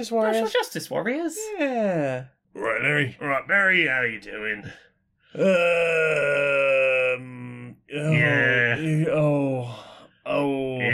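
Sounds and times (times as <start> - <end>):
speech: 0.0 - 10.9
person screaming wails: 5.4 - 7.4, 8.0 - 8.9.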